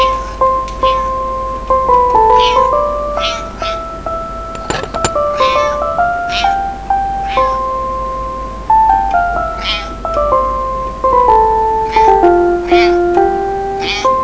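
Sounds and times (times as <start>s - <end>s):
piano: 0.0s - 14.2s.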